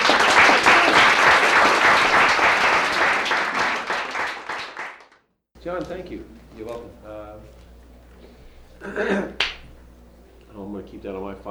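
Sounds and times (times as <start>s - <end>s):
audience applause after a reading: 0.0s - 5.2s
speech: 5.8s - 7.6s, 8.8s - 9.4s, 10.6s - 11.4s.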